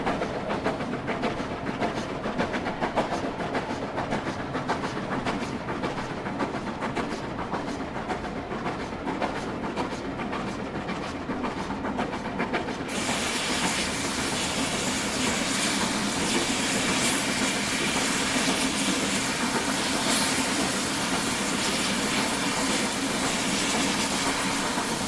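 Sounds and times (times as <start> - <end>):
train departing York: 0.0 - 25.0.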